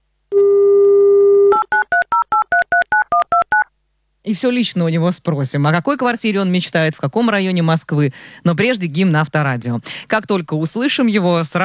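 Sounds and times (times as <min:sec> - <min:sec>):
telephone dial tone: 0:00.4 - 0:03.7
speech: 0:04.3 - 0:11.6.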